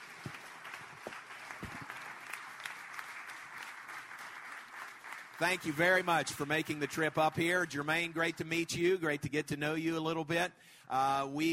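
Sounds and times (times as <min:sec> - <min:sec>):
audience applause at a luncheon: 0:00.0 - 0:08.6
speech: 0:05.4 - 0:11.5.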